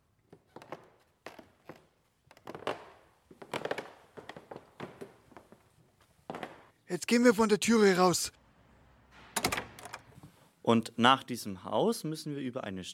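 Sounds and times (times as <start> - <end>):
old wooden stairs creaking: 0.2 - 5.6, 6.3 - 6.7
footsteps on old wooden stairs: 0.3 - 6.7
speech: 6.9 - 8.4, 10.7 - 12.9.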